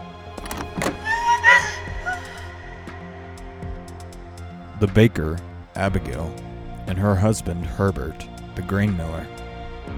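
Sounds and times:
door opening: 0:00.3 - 0:02.4
speech: 0:04.8 - 0:09.4.

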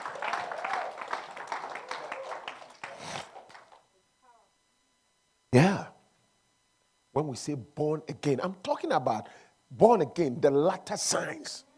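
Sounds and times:
crowd clapping: 0:00.0 - 0:03.8
speech: 0:07.2 - 0:11.7.

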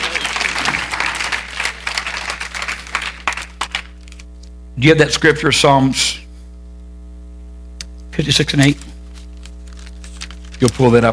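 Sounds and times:
audience clapping hands in praise: 0:00.0 - 0:04.2
speech: 0:04.8 - 0:06.2, 0:08.2 - 0:08.9, 0:10.6 - 0:11.1.

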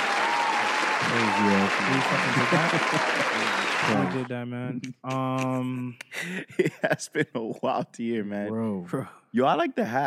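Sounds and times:
applause: 0:00.0 - 0:04.3
laughter: 0:01.1 - 0:04.3, 0:05.1 - 0:08.3
speech: 0:01.1 - 0:10.0.

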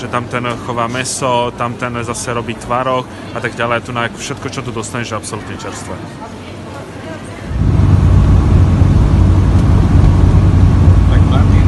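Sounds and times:
speech: 0:00.0 - 0:06.4
Russian hovercraft engine droning: 0:07.5 - 0:11.6.

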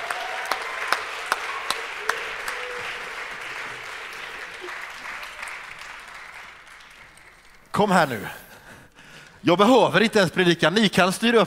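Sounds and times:
audience applause: 0:00.0 - 0:08.3
speech: 0:07.8 - 0:08.4, 0:09.4 - 0:11.4.

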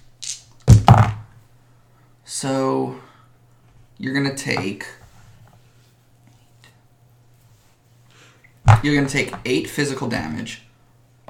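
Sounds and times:
dice being rolled: 0:00.2 - 0:01.2
speech: 0:02.4 - 0:03.1, 0:04.0 - 0:05.0, 0:08.8 - 0:10.7.

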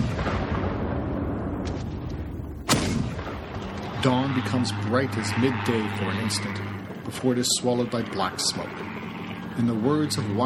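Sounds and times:
artillery barrage explosions: 0:00.0 - 0:05.5
speech: 0:04.0 - 0:09.0, 0:09.6 - 0:10.4.

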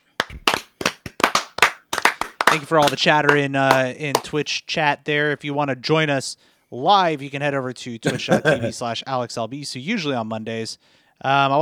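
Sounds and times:
hosts clapping hands: 0:00.0 - 0:04.4
speech: 0:02.5 - 0:11.6
laughter: 0:08.0 - 0:08.9.

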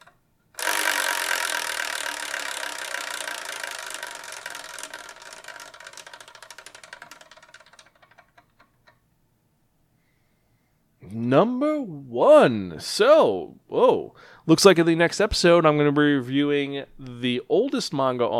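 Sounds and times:
spinning prize wheel ticking: 0:00.0 - 0:09.0
speech: 0:11.1 - 0:18.3.

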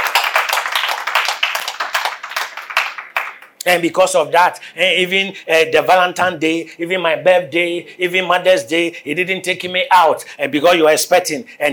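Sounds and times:
audience clapping hands: 0:00.0 - 0:03.7
speech: 0:03.6 - 0:11.7.

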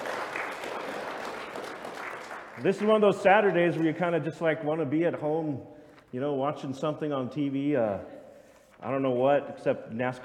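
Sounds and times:
audience round of applause: 0:00.0 - 0:03.0
speech: 0:02.6 - 0:08.2, 0:08.8 - 0:10.2.

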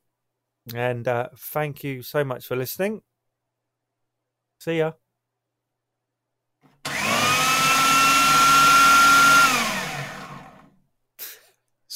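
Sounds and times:
speech: 0:00.7 - 0:03.1, 0:04.6 - 0:05.0
vacuum cleaner running: 0:06.8 - 0:10.8.

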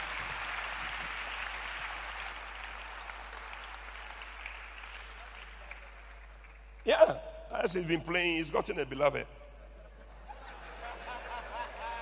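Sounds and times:
audience clapping: 0:00.0 - 0:07.1
speech: 0:06.8 - 0:09.4
laughter: 0:09.6 - 0:12.0.

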